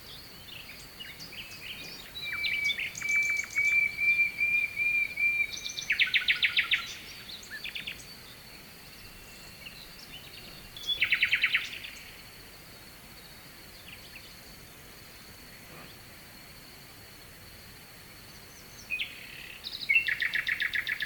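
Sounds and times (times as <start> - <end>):
Nightingale song: 0.0 - 12.1, 18.5 - 21.0.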